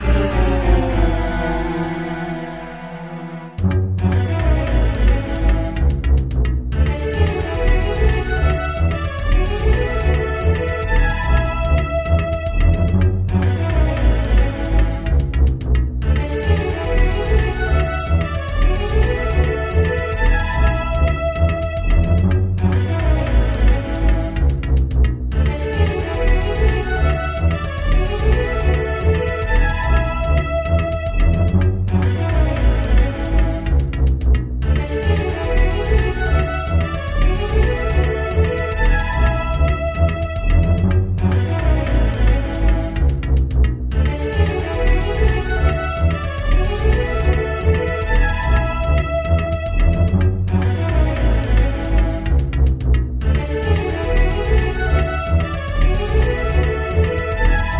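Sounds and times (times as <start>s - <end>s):
orchestral music: 0.0s - 57.7s.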